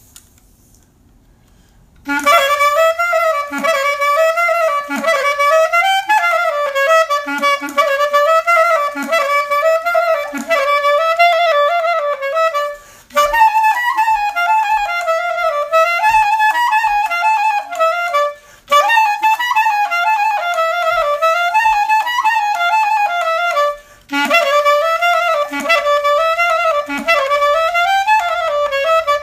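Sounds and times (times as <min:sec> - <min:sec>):
clarinet playing: 0:02.0 - 0:29.2.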